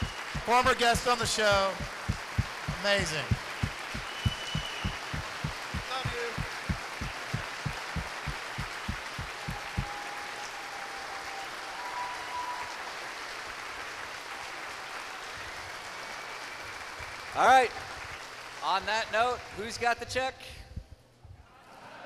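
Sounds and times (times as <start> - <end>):
crowd noise: 0.0 - 9.9
audience rhythmic clapping: 0.0 - 11.9, 12.7 - 19.7
speech: 0.5 - 2.0, 2.8 - 3.4, 17.4 - 17.8, 18.7 - 20.6.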